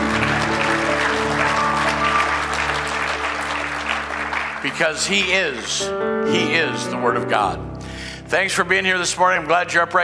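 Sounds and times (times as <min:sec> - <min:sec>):
church congregation clapping hands: 0:00.0 - 0:06.6
speech: 0:04.6 - 0:07.7, 0:08.3 - 0:10.0.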